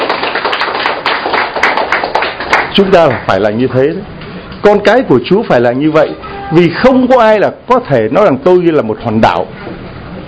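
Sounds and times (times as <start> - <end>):
congregation round of applause: 0.0 - 3.4
speech: 2.8 - 9.8.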